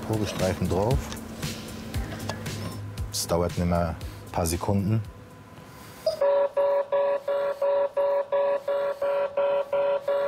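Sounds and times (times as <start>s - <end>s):
speech: 0.1s - 1.6s, 3.2s - 5.2s
explosive trace detector electronic alarm beeping: 6.0s - 10.2s.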